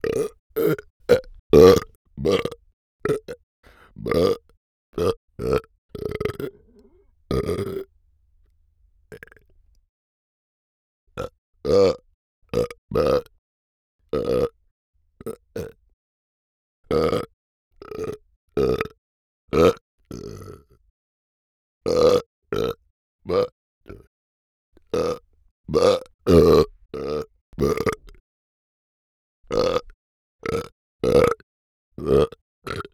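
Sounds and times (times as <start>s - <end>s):
burp recorded in an anechoic chamber: 0.0s - 7.9s, 11.2s - 13.3s, 14.1s - 14.6s, 16.9s - 20.7s, 21.8s - 24.1s, 24.9s - 28.2s, 29.5s - 31.4s, 32.0s - 32.9s.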